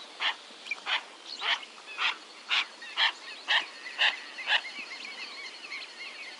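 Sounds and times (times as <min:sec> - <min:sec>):
yellow-billed pintail giving harsh rasping calls: 0:00.2 - 0:04.7.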